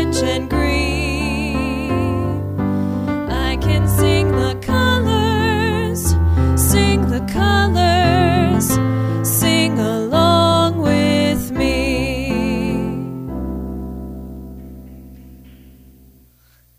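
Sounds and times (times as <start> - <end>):
vocals: 0.0 - 13.4.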